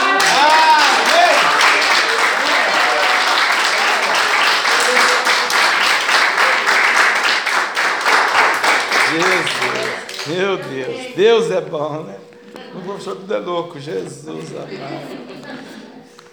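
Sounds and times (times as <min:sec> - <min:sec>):
audience applause: 0:00.0 - 0:11.1
laughter: 0:00.0 - 0:16.3
speech: 0:10.3 - 0:15.7.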